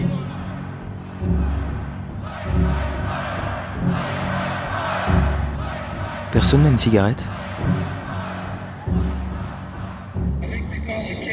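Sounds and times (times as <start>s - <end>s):
crowd protesting at a rock concert: 0.0s - 10.3s
speech: 6.3s - 7.4s.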